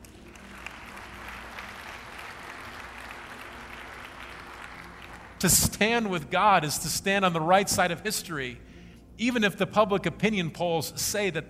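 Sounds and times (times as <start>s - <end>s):
crowd clapping: 0.0s - 6.1s
speech: 5.4s - 11.4s.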